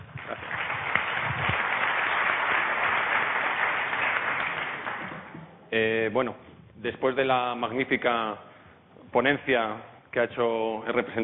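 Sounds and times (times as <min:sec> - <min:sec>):
audience applause: 0:00.0 - 0:05.5
speech: 0:05.7 - 0:08.5, 0:09.1 - 0:11.2.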